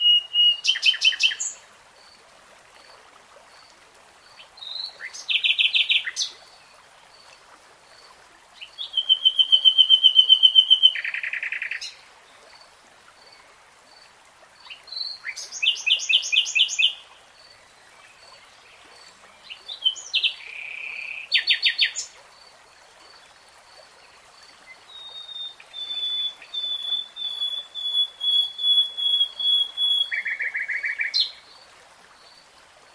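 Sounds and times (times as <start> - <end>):
nightingale song: 0.0 - 1.6, 4.4 - 6.5, 8.6 - 12.0, 14.6 - 22.1, 24.7 - 31.6.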